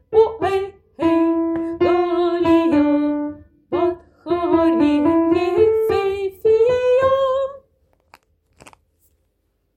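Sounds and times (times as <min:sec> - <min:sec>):
soprano singing: 0:00.0 - 0:07.7.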